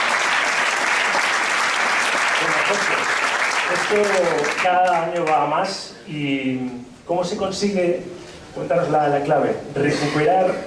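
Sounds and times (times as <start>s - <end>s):
audience applauding: 0.0s - 5.5s
speech: 3.7s - 10.6s.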